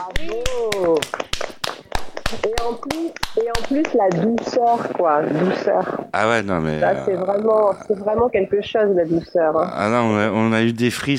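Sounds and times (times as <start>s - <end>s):
studio audience applause: 0.0s - 4.9s
speech: 2.6s - 11.1s.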